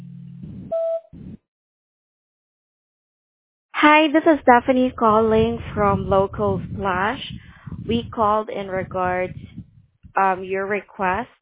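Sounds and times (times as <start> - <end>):
answering machine message beep: 0.7 - 1.1
speech: 3.8 - 9.5, 10.2 - 11.4.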